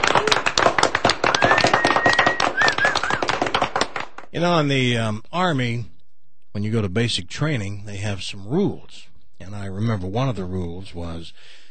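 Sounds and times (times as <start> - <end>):
crowd applause: 0.0 - 4.3
high whistle: 1.3 - 3.4
speech: 4.4 - 5.9, 6.6 - 11.6.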